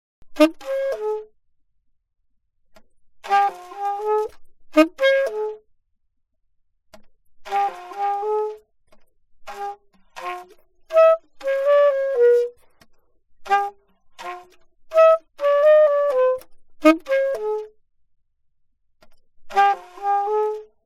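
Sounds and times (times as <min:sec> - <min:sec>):
alto saxophone: 0:00.3 - 0:01.3, 0:03.2 - 0:05.6, 0:07.4 - 0:08.6, 0:09.5 - 0:12.6, 0:13.4 - 0:17.7, 0:19.5 - 0:20.7.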